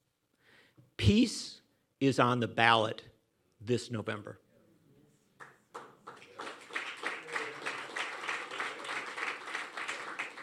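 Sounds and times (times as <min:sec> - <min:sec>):
speech: 0:01.1 - 0:04.4
audience applause: 0:05.4 - 0:10.4.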